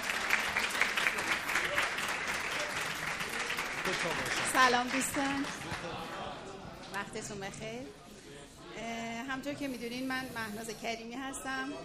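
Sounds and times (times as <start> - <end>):
audience applause in honor of a guest at an event: 0.0 - 6.3
speech: 3.9 - 6.2, 7.0 - 8.0, 9.3 - 11.8.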